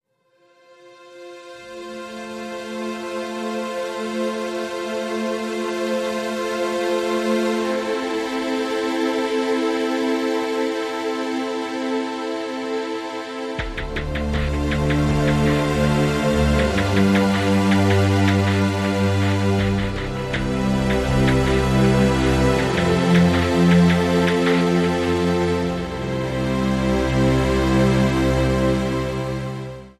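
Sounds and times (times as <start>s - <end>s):
elegant underscore music: 1.0s - 29.9s.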